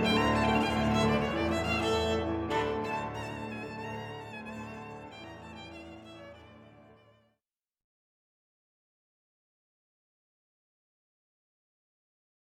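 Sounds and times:
folk dance music: 0:00.0 - 0:06.7.

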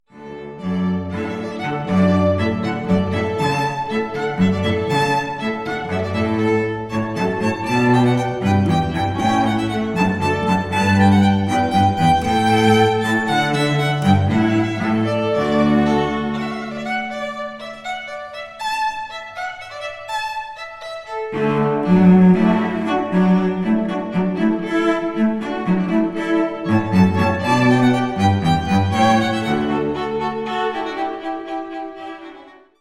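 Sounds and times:
string trio playing a hornpipe: 0:00.5 - 0:18.4, 0:21.3 - 0:32.2.

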